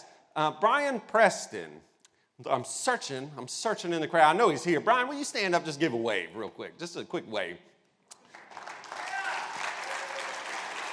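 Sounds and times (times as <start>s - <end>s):
speech: 0.4s - 7.7s
church audience applause: 8.3s - 10.9s.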